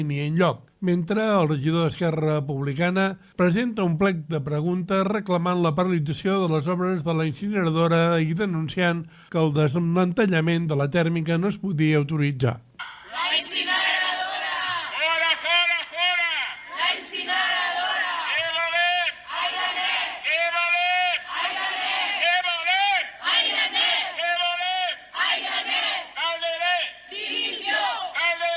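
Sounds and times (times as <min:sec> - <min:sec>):
speech: 0:00.0 - 0:13.6
protesters chanting slogans: 0:12.8 - 0:28.5.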